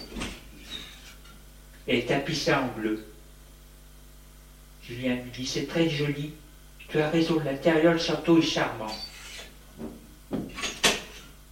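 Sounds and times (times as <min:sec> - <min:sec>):
speech: 0:01.9 - 0:03.1, 0:04.9 - 0:09.1
knocking on a door: 0:09.8 - 0:10.5.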